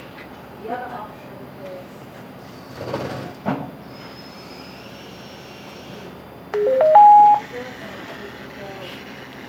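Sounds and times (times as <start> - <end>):
acoustic modem downloading data: 6.6 - 7.4.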